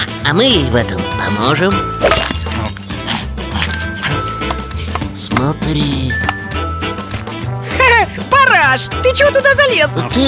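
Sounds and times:
music: 0:00.0 - 0:10.2
speech: 0:00.3 - 0:02.2, 0:05.3 - 0:06.4, 0:08.7 - 0:10.2
ice smashing and breaking: 0:02.0 - 0:02.9.

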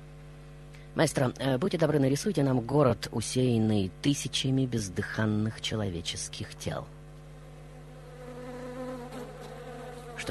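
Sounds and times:
speech: 0:01.0 - 0:07.0
swarm of flies buzzing: 0:07.3 - 0:10.3.

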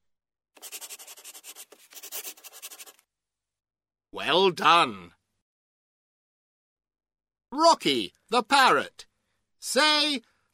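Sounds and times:
pencil scratching across paper drawing a picture: 0:00.6 - 0:03.0
speech: 0:04.1 - 0:05.2, 0:07.5 - 0:10.3.

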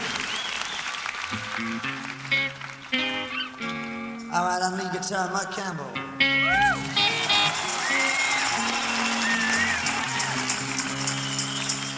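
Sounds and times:
audience clapping: 0:00.0 - 0:04.0, 0:06.8 - 0:11.9
speech: 0:01.3 - 0:02.2, 0:04.4 - 0:07.0.

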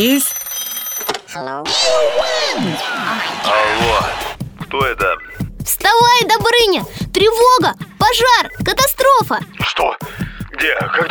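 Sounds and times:
speech: 0:00.0 - 0:00.3, 0:01.4 - 0:11.0
telephone ringing: 0:00.0 - 0:01.6.

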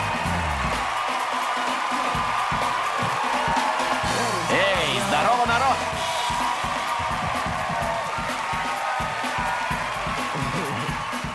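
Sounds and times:
audience applause: 0:00.0 - 0:11.3.

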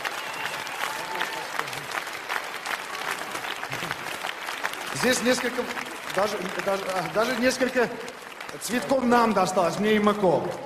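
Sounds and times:
audience applause: 0:00.0 - 0:10.5
speech: 0:05.0 - 0:10.6.

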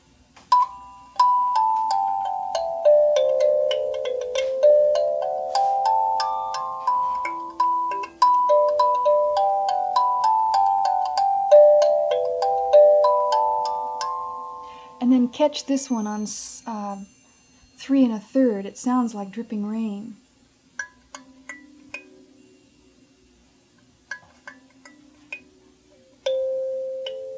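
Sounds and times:
kalimba played back at slow tape speed: 0:00.5 - 0:17.6, 0:24.1 - 0:27.3
speech: 0:15.4 - 0:17.2, 0:17.8 - 0:20.2.

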